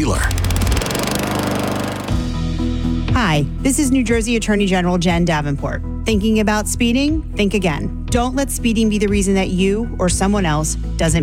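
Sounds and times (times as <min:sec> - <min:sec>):
speech: 0:00.0 - 0:00.4, 0:03.2 - 0:11.2
Gravely lawn mower engine running: 0:00.0 - 0:02.3.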